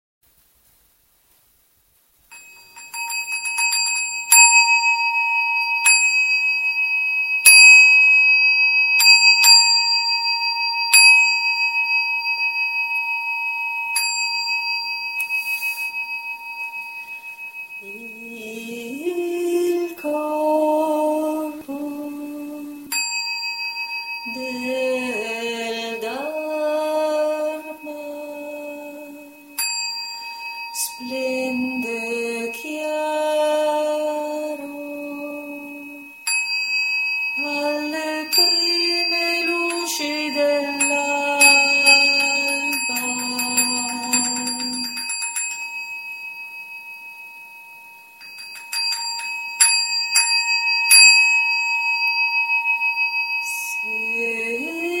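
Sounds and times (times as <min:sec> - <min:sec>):
bells ringing: 0:02.3 - 0:18.7, 0:22.9 - 0:33.2, 0:35.6 - 0:54.8
morning song: 0:17.8 - 0:23.0, 0:24.3 - 0:29.6, 0:30.8 - 0:36.1, 0:37.4 - 0:45.2.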